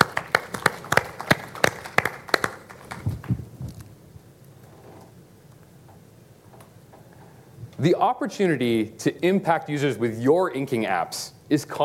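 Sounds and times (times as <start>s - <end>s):
audience applause: 0.0s - 3.6s
speech: 7.8s - 11.8s.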